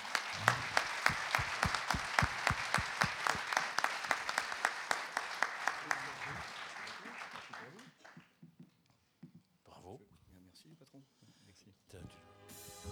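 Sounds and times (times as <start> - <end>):
audience applause: 0.0 - 8.3.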